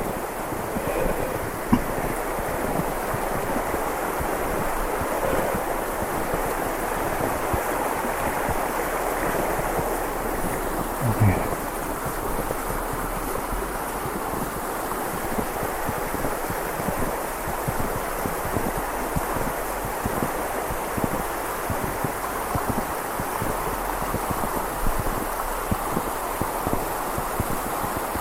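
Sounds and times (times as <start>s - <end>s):
gusting wind: 0.0s - 28.2s
snowy river rushing: 0.0s - 28.2s.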